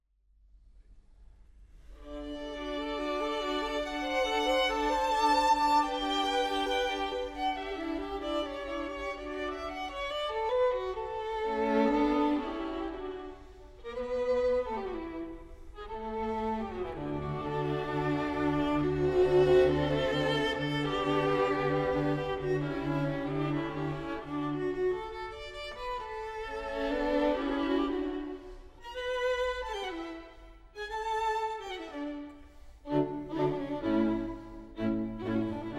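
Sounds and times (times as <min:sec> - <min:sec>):
string quartet: 0:01.8 - 0:35.7.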